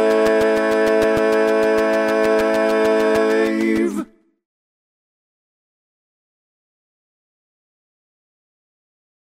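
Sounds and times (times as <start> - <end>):
bass line: 0.0 - 4.1.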